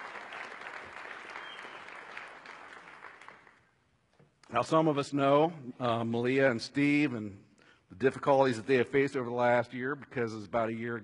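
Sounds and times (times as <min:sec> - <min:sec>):
audience applauding a speaker: 0:00.0 - 0:03.6
speech: 0:04.5 - 0:07.4, 0:08.0 - 0:11.0.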